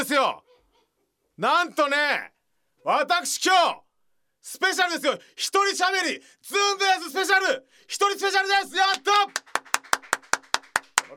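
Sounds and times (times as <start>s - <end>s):
speech: 0.0s - 0.4s, 1.4s - 3.8s, 4.4s - 9.9s
hand claps: 8.9s - 11.1s.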